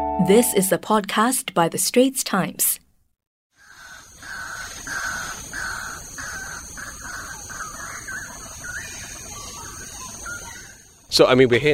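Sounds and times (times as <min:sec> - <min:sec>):
speech: 0:00.2 - 0:02.8, 0:11.2 - 0:11.7
crow-like caws in forest: 0:03.5 - 0:11.1.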